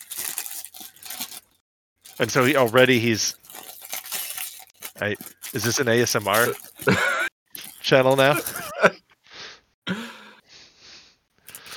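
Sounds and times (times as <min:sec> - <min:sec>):
plastic packet being ripped open: 0:00.0 - 0:08.7
speech: 0:02.2 - 0:03.4, 0:05.0 - 0:07.1, 0:07.9 - 0:09.0.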